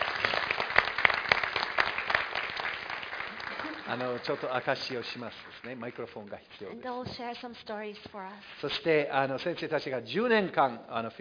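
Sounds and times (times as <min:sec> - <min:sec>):
audience applause: 0:00.0 - 0:06.3
speech: 0:03.9 - 0:11.1.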